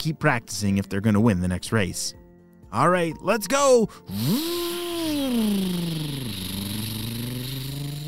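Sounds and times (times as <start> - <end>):
speech: 0.0 - 4.7
dirt bikes taking off: 4.2 - 8.0.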